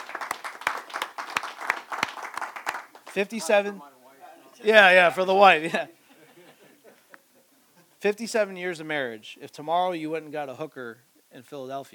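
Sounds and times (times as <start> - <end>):
crowd applause: 0.0 - 3.6
speech: 3.2 - 3.9, 4.6 - 6.0, 8.0 - 11.9
laughter: 5.1 - 8.0.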